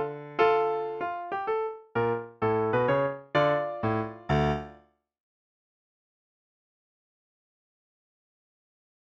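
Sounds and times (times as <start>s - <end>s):
piano piece: 0.0s - 4.9s.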